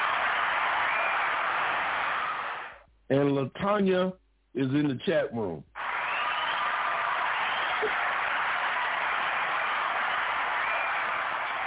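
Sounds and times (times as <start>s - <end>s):
many hands clapping: 0.0s - 2.8s, 5.8s - 11.6s
speech: 3.1s - 5.7s.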